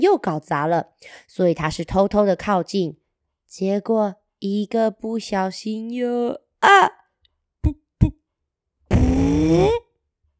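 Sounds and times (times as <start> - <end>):
speech: 0.0 - 7.0, 9.3 - 9.8
voice imitating a fart: 8.9 - 9.9.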